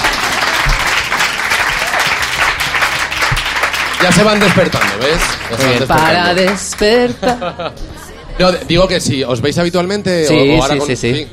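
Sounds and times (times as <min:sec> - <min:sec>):
studio audience applauding: 0:00.0 - 0:07.4
speech: 0:04.0 - 0:11.3
laughter: 0:06.9 - 0:08.6.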